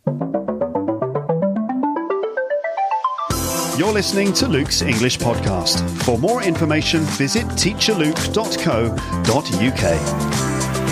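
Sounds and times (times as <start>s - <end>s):
podcast intro jingle: 0.0s - 10.3s
speech: 3.8s - 10.6s.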